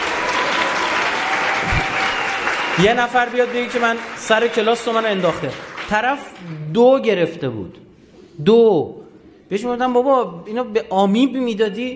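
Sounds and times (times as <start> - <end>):
audience applause: 0.0 - 6.4
speech: 2.8 - 7.8, 8.4 - 11.9.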